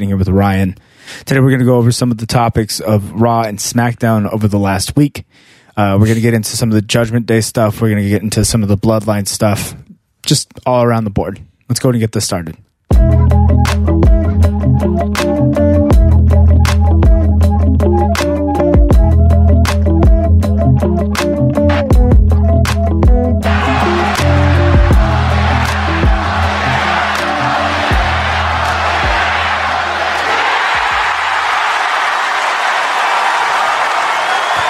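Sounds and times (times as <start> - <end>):
speech: 0.0 - 13.9, 14.7 - 15.6
loud music with a steady beat: 12.9 - 31.0
wrestling crowd cheering and applauding at SmackDown: 23.4 - 34.6.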